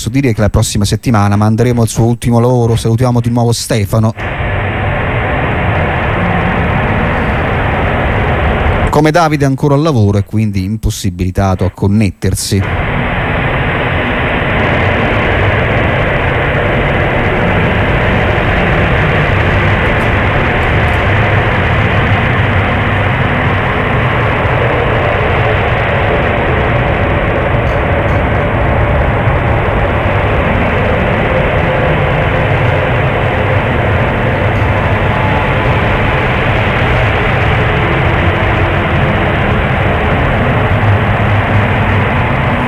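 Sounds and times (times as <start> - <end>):
speech: 0.0 - 4.4, 8.9 - 12.9
dense rumbling drone music: 1.2 - 10.3, 12.5 - 42.6.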